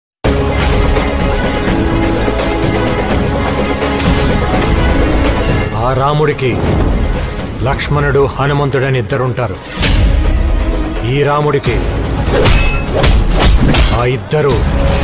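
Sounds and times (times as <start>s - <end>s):
Telugu film background music: 0.2s - 15.0s.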